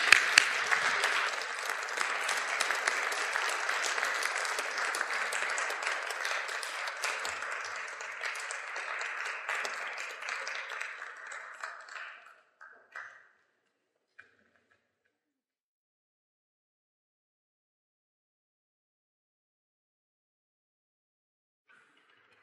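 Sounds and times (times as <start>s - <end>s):
audience applause: 0.0s - 12.3s.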